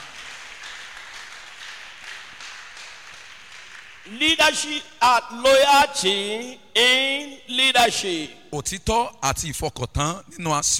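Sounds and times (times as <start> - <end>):
audience applause: 0.0 - 4.1
speech: 4.1 - 10.7.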